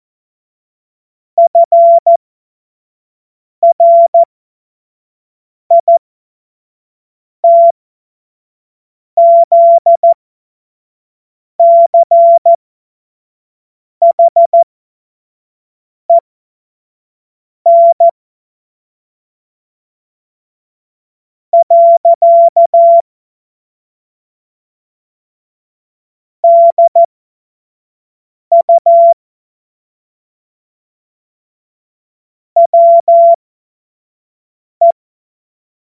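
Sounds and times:
CW Morse code beeps: 1.4 - 2.2, 3.6 - 4.3, 5.7 - 6.0, 7.4 - 7.7, 9.2 - 10.2, 11.6 - 12.6, 14.0 - 14.7, 17.7 - 18.2, 21.6 - 23.0, 26.4 - 27.1, 28.5 - 29.2, 32.6 - 33.4.

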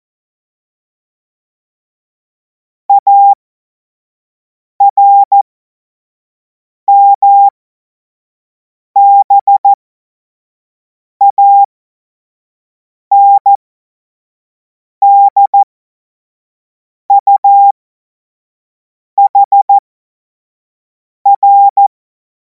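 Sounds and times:
Morse code course tones: 2.9 - 3.4, 4.8 - 5.4, 6.9 - 7.5, 9.0 - 9.8, 11.2 - 11.7, 13.1 - 13.6, 15.1 - 15.7, 17.2 - 17.8, 19.2 - 19.8, 21.3 - 21.9.

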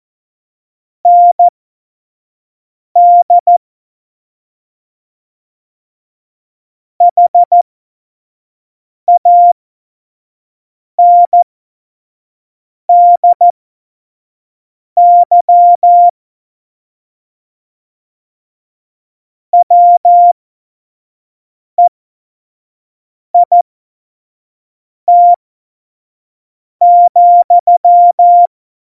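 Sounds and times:
morse code beeps: 1.1 - 1.5, 3.0 - 3.6, 7.0 - 7.6, 9.1 - 9.6, 11.0 - 11.4, 12.9 - 13.4, 15.0 - 16.1, 19.6 - 20.3, 25.1 - 25.4, 26.8 - 28.5.

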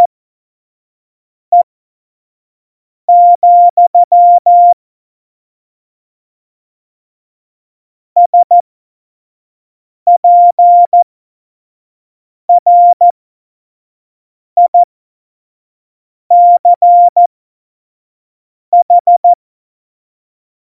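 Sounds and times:
Morse code course beeps: 3.1 - 4.8, 8.2 - 8.6, 10.1 - 11.0, 12.5 - 13.1, 14.6 - 14.9, 16.3 - 17.3, 18.8 - 19.4.

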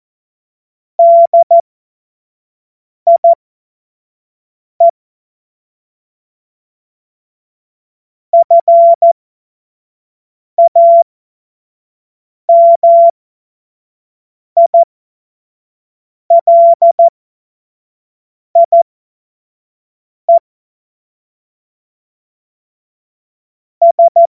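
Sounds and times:
CW Morse code beeps: 1.0 - 1.6, 3.1 - 3.4, 8.4 - 9.2, 10.6 - 11.0, 12.5 - 13.1, 14.7 - 14.9, 16.3 - 17.1, 18.6 - 18.8, 23.8 - 24.3.

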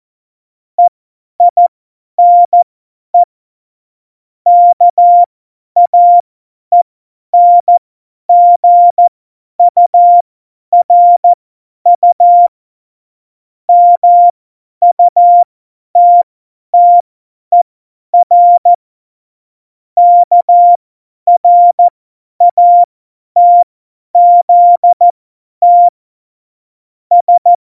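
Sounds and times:
CW Morse code beeps: 2.2 - 2.6, 4.5 - 6.2, 7.4 - 10.2, 10.8 - 11.4, 12.0 - 12.5, 13.7 - 15.4, 16.0 - 16.2, 16.8 - 17.6, 18.2 - 18.7, 20.0 - 25.9, 27.1 - 27.6.

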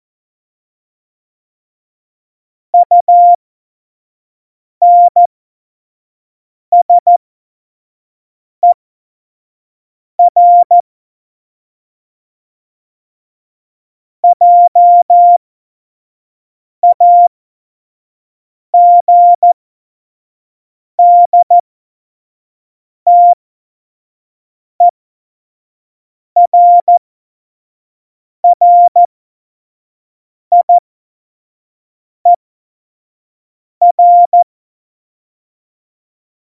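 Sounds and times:
CW Morse code at tempo 70: 2.8 - 3.4, 4.8 - 5.3, 6.8 - 7.2, 10.2 - 10.8, 14.2 - 15.4, 16.8 - 17.3, 18.8 - 19.6, 21.0 - 21.6, 23.1 - 23.4, 26.4 - 27.0, 28.5 - 29.1, 30.5 - 30.8, 33.8 - 34.5.

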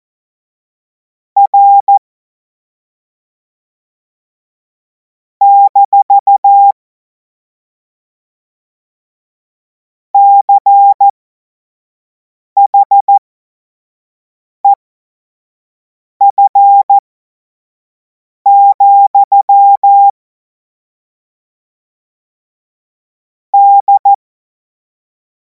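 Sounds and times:
Morse code course tones: 1.4 - 2.0, 5.4 - 6.7, 10.2 - 11.1, 12.6 - 13.2, 16.2 - 17.0, 18.5 - 20.1, 23.6 - 24.2.

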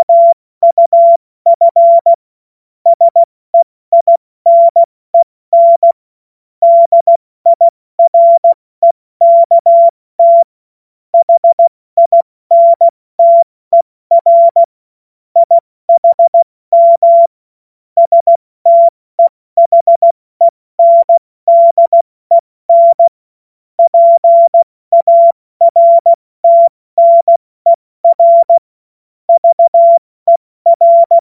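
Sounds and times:
morse code beeps: 0.0 - 2.2, 2.9 - 3.3, 3.9 - 6.0, 6.6 - 10.5, 11.2 - 14.7, 15.4 - 17.3, 18.0 - 23.2, 23.8 - 28.6, 29.3 - 31.2.

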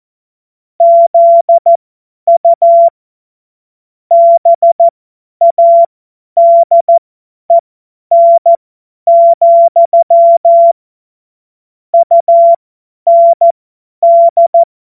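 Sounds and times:
Morse code course tones: 0.8 - 2.9, 4.1 - 10.8, 12.0 - 14.7.

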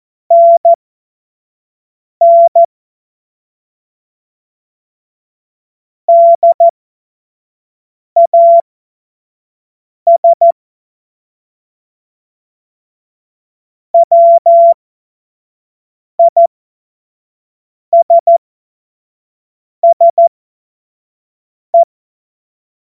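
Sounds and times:
Morse code course tones: 0.3 - 0.8, 2.2 - 2.7, 6.1 - 6.7, 8.2 - 8.6, 10.1 - 10.5, 14.0 - 14.8, 16.2 - 16.5, 19.8 - 20.3.

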